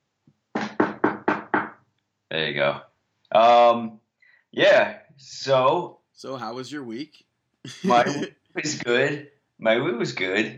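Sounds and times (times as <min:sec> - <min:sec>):
knocking on wood: 0:00.6 - 0:01.8
speech: 0:02.3 - 0:10.5
laughter: 0:06.2 - 0:07.0, 0:07.7 - 0:08.8.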